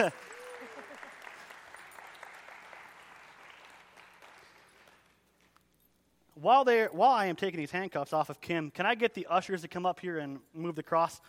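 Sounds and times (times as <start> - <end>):
speech: 0.0 - 0.2, 6.4 - 11.2
audience applause: 0.0 - 5.2.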